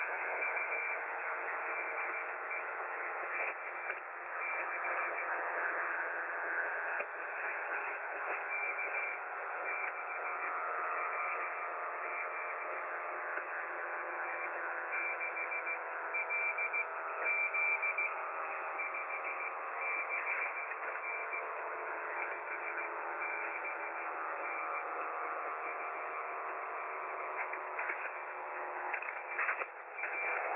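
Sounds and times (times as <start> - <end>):
160 SSB radio noise: 0.0 - 30.5.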